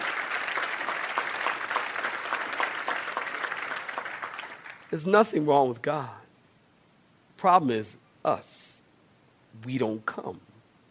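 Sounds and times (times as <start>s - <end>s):
audience clapping hands: 0.0s - 5.0s
speech: 4.9s - 6.2s, 7.4s - 8.7s, 9.6s - 10.5s.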